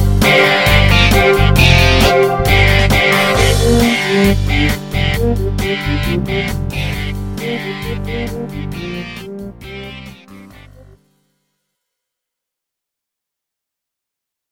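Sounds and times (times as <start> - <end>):
musical riff: 0.0 - 11.1.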